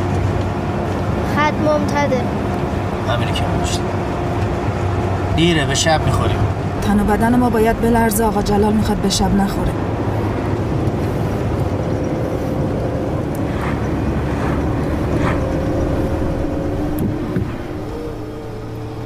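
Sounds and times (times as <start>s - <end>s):
car engine accelerating to overtake a Nissan in a no-passing zone: 0.0s - 19.0s
road noise: 0.0s - 19.0s
speech: 1.5s - 2.4s, 3.1s - 4.2s, 5.4s - 9.9s.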